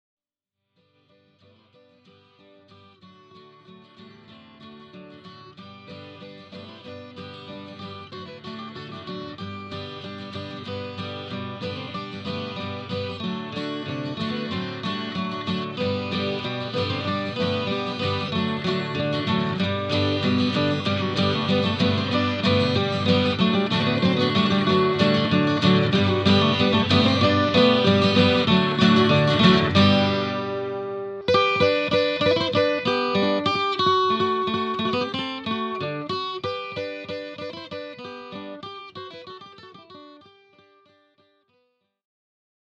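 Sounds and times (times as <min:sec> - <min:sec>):
clog song: 0:11.6 - 0:37.0.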